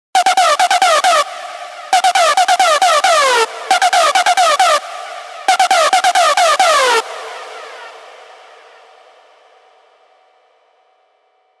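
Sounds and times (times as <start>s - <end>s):
screech: 0.2s - 9.2s.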